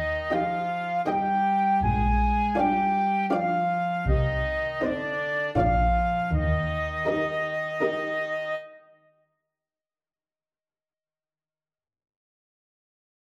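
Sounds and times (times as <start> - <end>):
slow legato waltz: 0.0 - 8.7.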